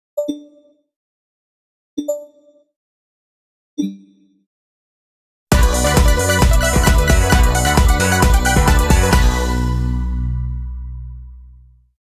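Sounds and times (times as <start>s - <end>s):
base game sound: 5.5s - 11.3s.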